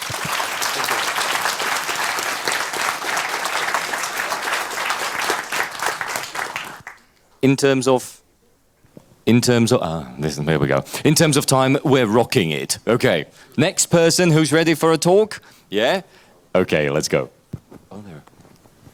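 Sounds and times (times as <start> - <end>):
audience applause: 0.0 - 7.1
speech: 7.4 - 8.2, 9.3 - 18.1.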